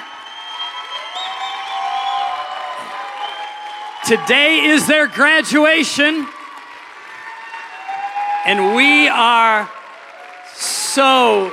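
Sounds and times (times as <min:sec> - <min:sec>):
crowd clapping: 0:00.0 - 0:11.5
speech: 0:04.1 - 0:06.4, 0:08.4 - 0:09.8, 0:10.6 - 0:11.5.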